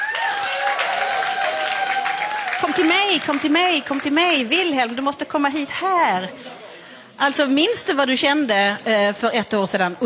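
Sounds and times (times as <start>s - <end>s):
audience applause: 0.0s - 4.6s
speech: 2.8s - 6.6s, 7.2s - 10.0s.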